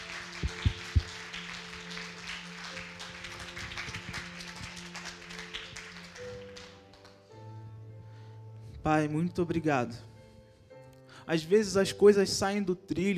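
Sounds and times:
audience applause: 0.0s - 7.2s
speech: 8.9s - 10.1s, 11.3s - 13.1s.

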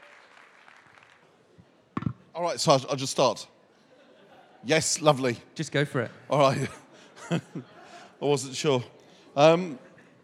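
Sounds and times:
audience applause: 0.0s - 1.3s
speech: 2.4s - 3.5s, 4.6s - 9.9s
laughter: 3.8s - 5.1s, 6.3s - 8.7s.

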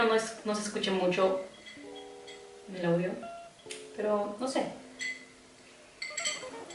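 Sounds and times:
speech: 0.0s - 1.9s, 2.7s - 4.8s
metal straw clinking in glass: 5.0s - 5.2s, 6.0s - 6.7s.

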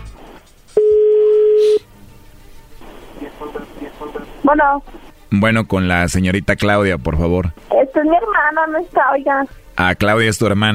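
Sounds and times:
phone dialing tone: 0.8s - 1.8s
speech: 4.5s - 10.7s.

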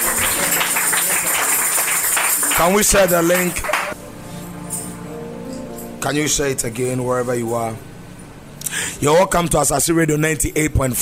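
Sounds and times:
audience clapping hands: 0.0s - 4.0s
speech: 2.6s - 3.7s, 6.0s - 7.9s, 8.7s - 11.0s.

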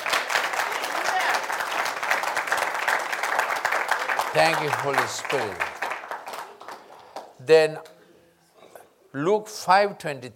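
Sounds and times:
audience clapping: 0.0s - 7.4s
speech: 4.4s - 5.8s, 7.4s - 7.9s, 9.2s - 10.3s.

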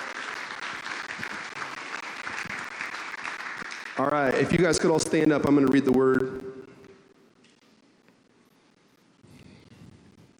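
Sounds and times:
crowd applause: 0.0s - 5.1s
speech: 4.0s - 6.4s.

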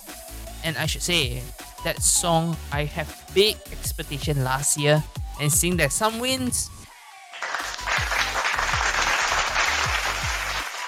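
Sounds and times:
speech: 0.6s - 6.8s
clapping applause: 7.4s - 10.8s.

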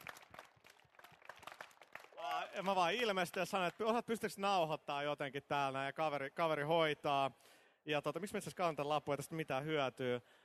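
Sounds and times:
audience applause: 0.0s - 3.8s
high tonal cheer: 1.2s - 3.1s
speech: 2.4s - 10.4s.

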